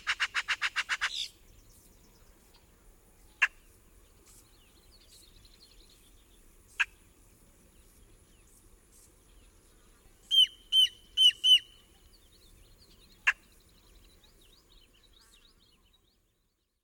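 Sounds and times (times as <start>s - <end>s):
adult boat-tailed grackle calling: 0.0s - 1.4s, 10.3s - 11.8s, 13.2s - 13.5s.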